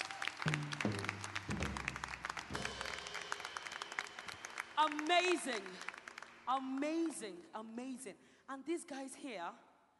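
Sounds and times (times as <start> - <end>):
audience clapping: 0.0 - 7.4
speech: 4.8 - 5.9, 6.5 - 9.7.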